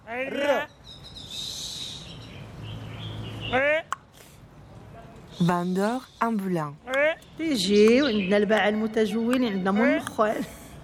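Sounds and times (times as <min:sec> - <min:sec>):
early-morning birdsong outside a large old house: 0:00.0 - 0:10.3
speech: 0:00.1 - 0:00.8, 0:05.4 - 0:06.8, 0:07.4 - 0:10.8.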